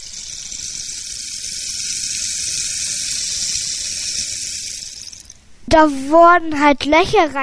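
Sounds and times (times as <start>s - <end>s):
rain stick slowly turned: 0.0s - 5.4s
speech: 5.7s - 7.4s.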